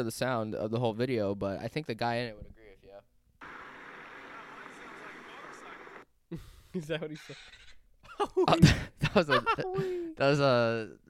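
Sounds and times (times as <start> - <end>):
speech: 0.0 - 3.1, 6.3 - 11.0
Segway motor and tires whirring on pavement: 3.4 - 6.0
faint high hisses: 3.4 - 6.0
laughter: 3.5 - 6.0, 7.0 - 10.1.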